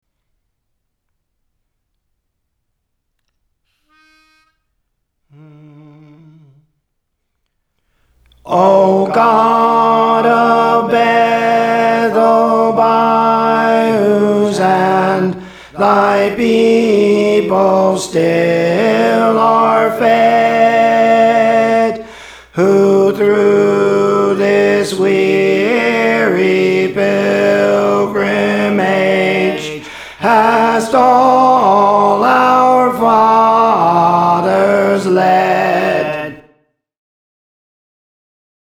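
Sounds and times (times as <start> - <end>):
tenor singing songs: 8.3 - 36.5.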